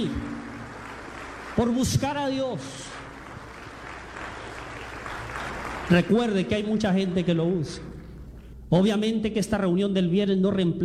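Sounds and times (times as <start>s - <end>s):
applause from a Catholic church congregation at a Friday gathering: 0.0s - 7.2s
speech: 1.6s - 2.9s, 5.9s - 7.9s, 8.7s - 10.8s.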